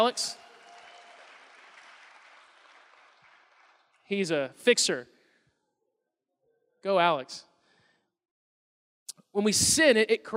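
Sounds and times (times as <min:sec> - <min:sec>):
speech: 0:00.0 - 0:00.4, 0:04.1 - 0:05.1, 0:06.8 - 0:07.5, 0:09.3 - 0:10.3
round of applause: 0:00.0 - 0:04.5.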